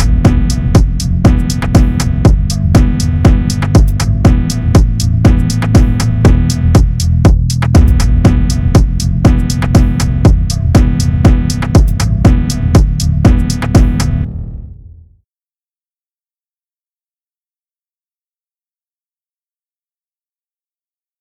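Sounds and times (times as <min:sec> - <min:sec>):
phonk music: 0:00.0 - 0:14.9.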